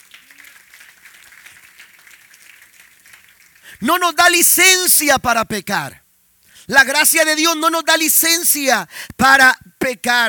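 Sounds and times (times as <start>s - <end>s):
audience applause: 0.0s - 3.8s
speech: 3.8s - 6.0s, 6.7s - 10.2s.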